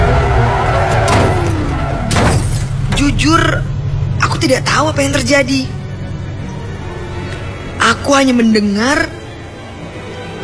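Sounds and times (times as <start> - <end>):
car braking suddenly: 0.0 - 4.1
road noise rumbling: 0.0 - 10.4
speech: 4.5 - 5.8, 7.9 - 9.2.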